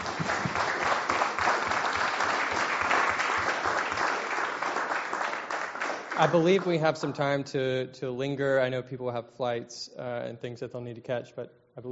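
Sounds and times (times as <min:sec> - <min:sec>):
audience applause: 0:00.0 - 0:06.8
speech: 0:06.2 - 0:11.8.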